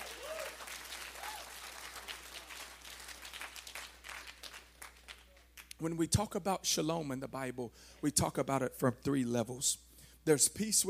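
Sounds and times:
audience hand clapping: 0:00.0 - 0:05.8
speech: 0:05.8 - 0:10.8.

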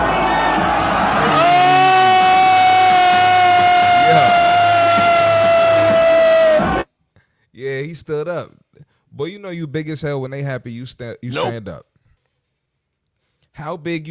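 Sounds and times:
crowd cheering: 0:00.0 - 0:06.8
loud horn-like tone: 0:04.0 - 0:04.6
speech: 0:08.1 - 0:12.0, 0:13.6 - 0:14.0.

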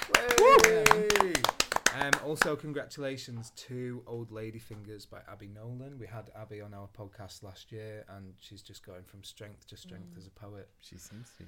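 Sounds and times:
cheering and clapping: 0:00.0 - 0:02.5
speech: 0:02.3 - 0:11.4.

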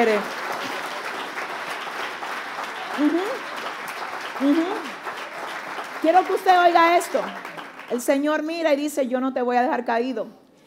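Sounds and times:
speech: 0:00.0 - 0:00.4, 0:03.0 - 0:03.4, 0:04.4 - 0:04.9, 0:06.0 - 0:10.4
audience applauding: 0:00.0 - 0:08.5.

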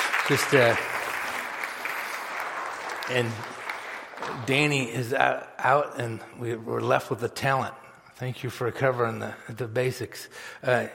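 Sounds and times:
audience clapping: 0:00.0 - 0:04.8
speech: 0:00.3 - 0:01.0, 0:03.1 - 0:03.6, 0:04.2 - 0:10.9.

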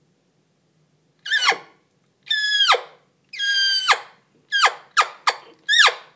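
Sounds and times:
mouth-blown elk call imitating cow elk mews: 0:01.2 - 0:01.7, 0:02.3 - 0:06.1.

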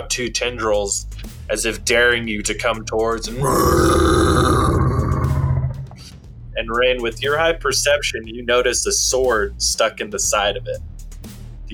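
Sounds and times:
speech: 0:00.0 - 0:04.7, 0:06.6 - 0:10.9
creature's loud bellowing roar: 0:03.4 - 0:06.1.

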